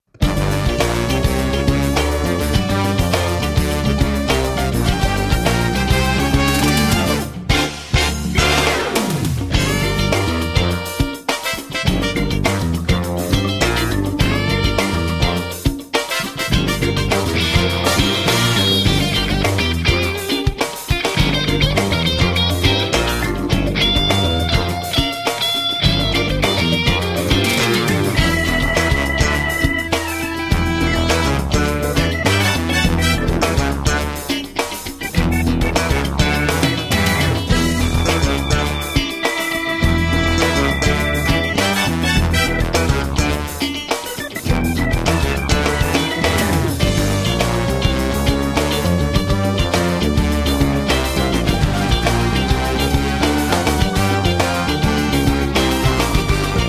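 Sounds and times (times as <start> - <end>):
disco funk music: 0.0 - 56.6.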